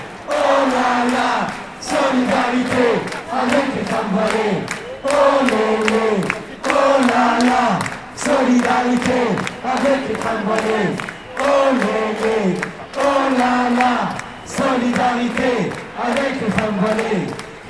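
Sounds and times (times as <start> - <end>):
people chanting in solidarity with veiled women: 0.0 - 17.6.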